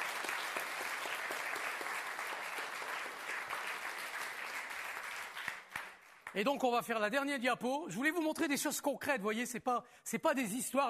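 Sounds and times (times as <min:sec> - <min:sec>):
audience applauding: 0:00.0 - 0:06.6
speech: 0:06.4 - 0:10.8.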